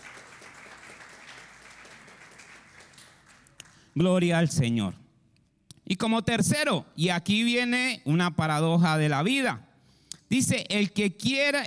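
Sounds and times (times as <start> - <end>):
loud applause: 0.0 - 3.8
speech: 4.0 - 5.0, 5.9 - 9.7, 10.3 - 11.6.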